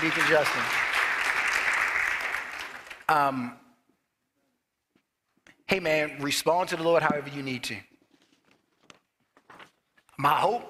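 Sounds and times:
speech: 0.0 - 0.9, 3.1 - 3.6, 5.7 - 7.9, 10.2 - 10.6
audience applause: 0.0 - 3.1.

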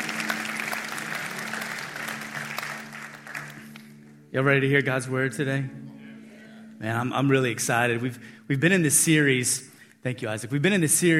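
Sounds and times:
church audience applause: 0.0 - 4.0
speech: 4.3 - 5.9, 6.8 - 11.1.

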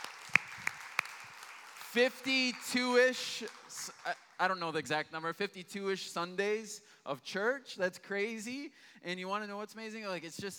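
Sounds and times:
sharp hand claps: 0.0 - 4.4
faint steady hiss: 0.0 - 10.5
speech: 2.0 - 10.5.

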